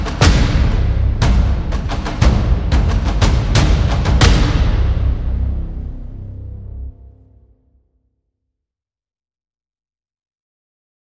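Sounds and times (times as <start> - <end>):
drums: 0.0 - 6.0
bass: 0.0 - 7.8.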